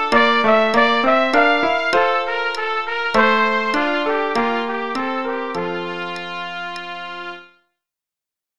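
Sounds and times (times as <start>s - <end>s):
metronome click: 0.0s - 7.0s
piano: 0.0s - 7.6s
trumpet: 0.0s - 7.7s.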